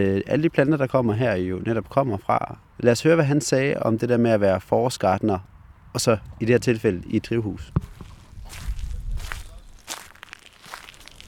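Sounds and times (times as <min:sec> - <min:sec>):
speech: 0:00.0 - 0:08.6
crunchy footsteps walking into a greenhouse: 0:07.6 - 0:11.2.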